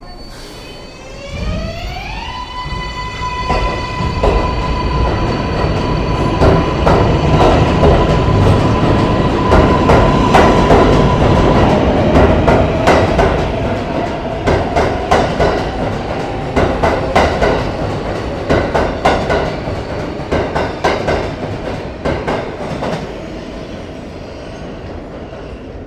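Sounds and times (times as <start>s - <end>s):
train: 0.0s - 25.8s.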